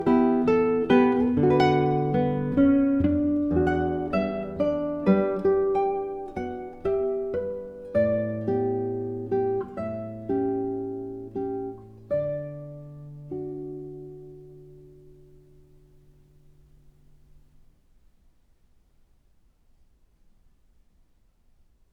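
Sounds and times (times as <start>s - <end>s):
guitar arrangement piece: 0.0s - 17.5s.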